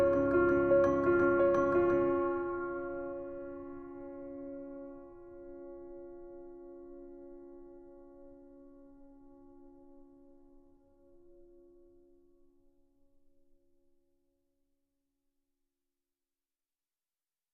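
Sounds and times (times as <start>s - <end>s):
piano: 0.0s - 12.7s.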